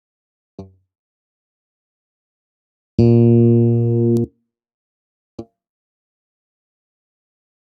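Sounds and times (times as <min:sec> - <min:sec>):
bass playing C minor pentatonic notes: 0:03.0 - 0:04.3.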